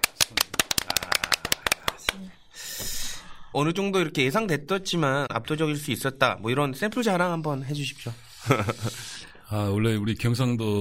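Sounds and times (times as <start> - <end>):
hands clapping: 0.0 - 2.2
laughter: 0.7 - 2.0, 8.4 - 9.3
speech: 3.6 - 10.7.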